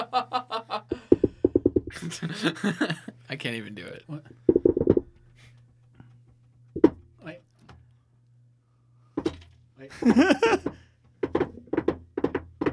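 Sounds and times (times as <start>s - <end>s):
knocking on a door in triplets: 1.1s - 2.0s, 4.5s - 5.1s, 6.8s - 7.1s, 10.5s - 12.7s
laughter: 1.9s - 3.2s, 9.9s - 10.6s
speech: 2.0s - 4.3s.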